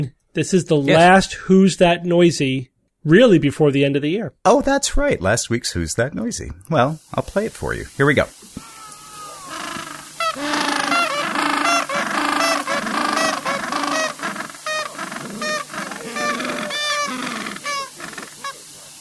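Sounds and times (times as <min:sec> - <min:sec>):
speech: 0:00.0 - 0:08.6
Gentoo penguins calling: 0:08.6 - 0:18.7.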